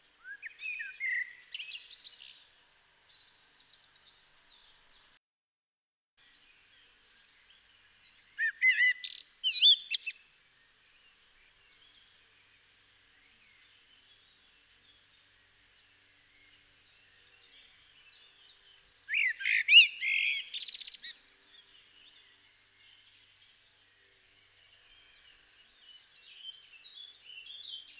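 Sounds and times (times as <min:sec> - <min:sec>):
common blackbird singing: 0:00.2 - 0:02.4, 0:08.3 - 0:10.2, 0:16.1 - 0:27.9.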